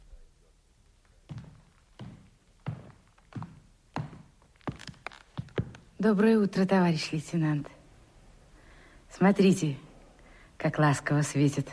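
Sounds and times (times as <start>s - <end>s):
footsteps along a corridor: 0.8s - 6.6s
speech: 6.0s - 7.8s, 9.2s - 9.8s, 10.6s - 11.7s.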